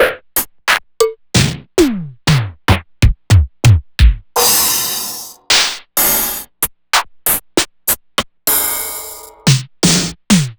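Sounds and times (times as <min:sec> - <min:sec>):
Roland MV8800 digital drum kit: 0:00.7 - 0:06.5, 0:08.5 - 0:10.5.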